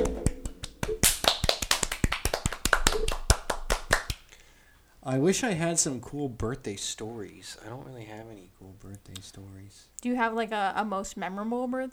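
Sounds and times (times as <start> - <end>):
hand clapping applause: 0.0 - 4.4
speech: 5.1 - 11.9.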